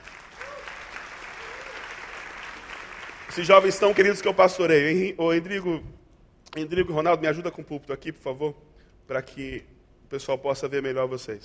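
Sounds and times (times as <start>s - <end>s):
audience applause: 0.0s - 4.4s
speech: 3.3s - 6.0s, 6.6s - 11.4s.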